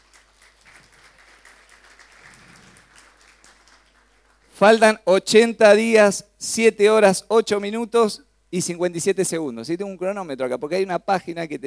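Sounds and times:
faint audience applause during a talk: 0:00.0 - 0:04.6
speech: 0:04.6 - 0:11.6.

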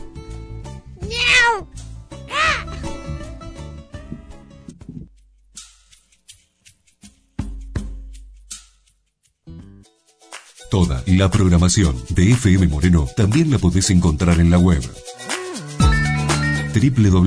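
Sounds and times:
cat meowing: 0:01.0 - 0:01.7, 0:02.3 - 0:02.7
speech: 0:10.7 - 0:15.1, 0:16.7 - 0:17.2.

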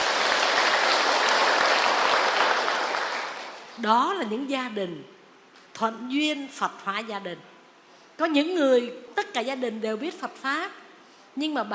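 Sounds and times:
audience applauding at a Buddhist dharma talk at Long Quang ancestral temple: 0:00.0 - 0:03.8
speech: 0:03.8 - 0:05.2, 0:05.8 - 0:07.5, 0:08.2 - 0:10.8, 0:11.4 - 0:11.7.

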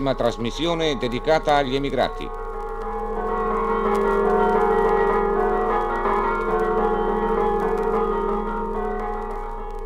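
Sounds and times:
speech: 0:00.0 - 0:02.4
church bells ringing in Friuli: 0:00.0 - 0:09.8.

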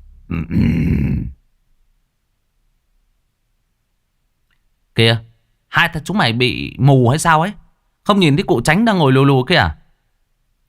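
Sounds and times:
speech: 0:00.3 - 0:01.0, 0:05.0 - 0:09.8
man clearing his throat: 0:00.3 - 0:01.4.

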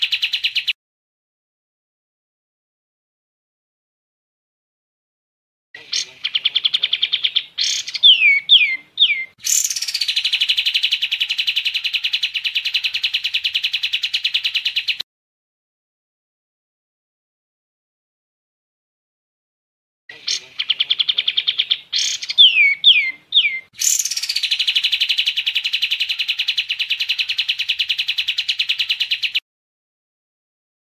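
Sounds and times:
sooty-headed bulbul singing: 0:05.8 - 0:15.0, 0:20.1 - 0:29.4.

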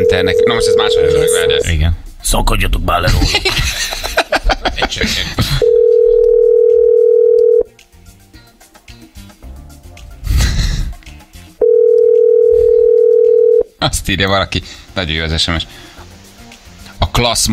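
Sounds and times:
telephone dial tone while calling a listener: 0:00.0 - 0:01.6, 0:05.6 - 0:07.7, 0:11.6 - 0:13.7
speech: 0:00.1 - 0:05.7, 0:14.1 - 0:15.9, 0:17.2 - 0:17.5
laughter: 0:03.1 - 0:06.2.

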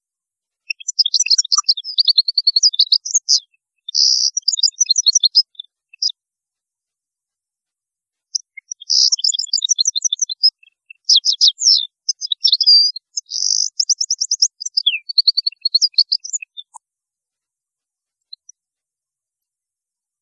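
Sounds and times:
European goldfinch song: 0:00.6 - 0:06.1, 0:08.3 - 0:16.8.

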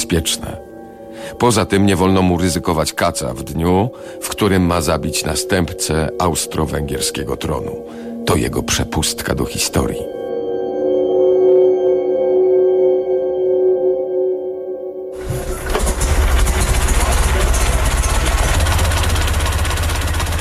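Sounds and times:
speech: 0:00.1 - 0:10.2
humming drone: 0:04.7 - 0:20.3
old Hispano-Suiza car engine turning over and idling: 0:15.2 - 0:20.3.

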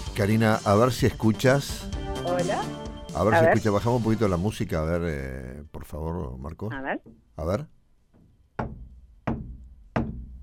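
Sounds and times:
speech: 0:00.2 - 0:07.8
mallet hammering on the ceiling during renovation: 0:08.6 - 0:10.4.

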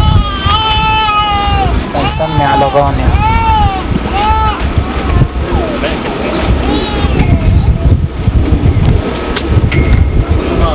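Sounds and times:
baby crying: 0:00.0 - 0:05.8, 0:06.6 - 0:07.9
low rumbling noise: 0:00.0 - 0:10.7
speech: 0:02.7 - 0:03.3.

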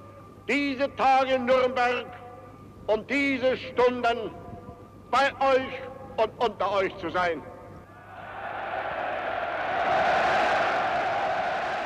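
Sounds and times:
speech: 0:00.5 - 0:02.2, 0:02.9 - 0:04.4, 0:05.1 - 0:07.5
crowd cheering Hitler at a Nazi party rally on the Zeppelin Field in Nuremberg: 0:08.2 - 0:11.8.

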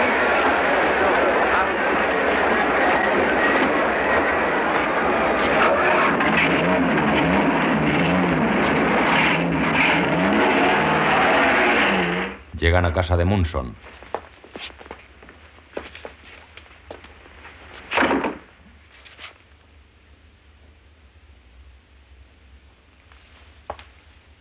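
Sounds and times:
car engine starting and driving off: 0:00.0 - 0:12.4
indistinct voice-like sounds: 0:00.0 - 0:13.8
speech: 0:12.8 - 0:14.0.

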